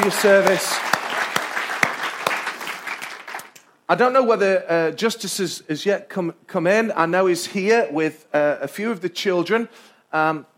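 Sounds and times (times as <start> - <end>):
speech: 0.0 - 0.9, 3.9 - 10.5
audience applause: 0.0 - 3.6.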